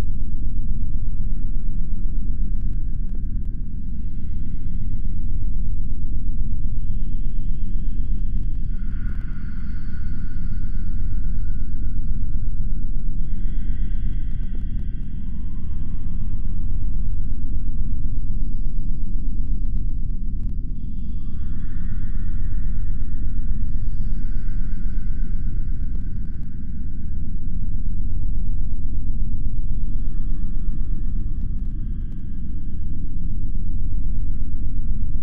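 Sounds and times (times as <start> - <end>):
underground ambience: 0.0 - 35.2.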